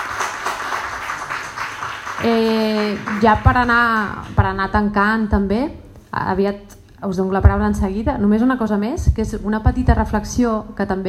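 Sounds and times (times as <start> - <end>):
audience applause: 0.0 - 3.9
speech: 2.2 - 11.0.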